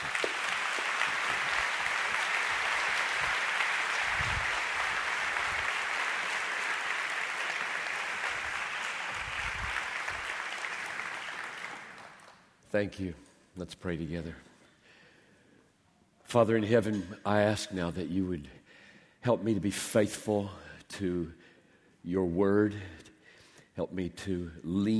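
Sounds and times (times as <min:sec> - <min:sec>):
audience applause in a church welcoming a guest speaker: 0:00.0 - 0:12.5
speech: 0:12.7 - 0:14.5, 0:16.3 - 0:18.6, 0:19.2 - 0:21.4, 0:22.0 - 0:23.0, 0:23.8 - 0:24.9.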